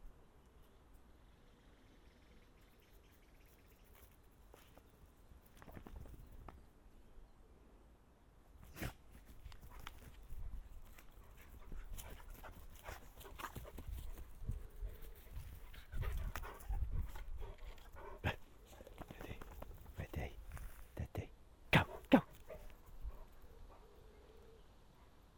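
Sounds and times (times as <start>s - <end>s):
rustling and scuffling movement: 3.8s - 6.7s, 8.5s - 21.0s
dog panting: 10.9s - 20.0s, 21.8s - 24.0s.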